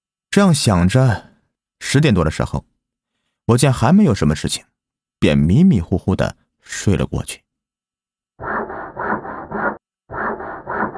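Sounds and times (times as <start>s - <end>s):
speech: 0.4s - 2.7s, 3.5s - 7.4s
sawing something: 8.4s - 10.9s.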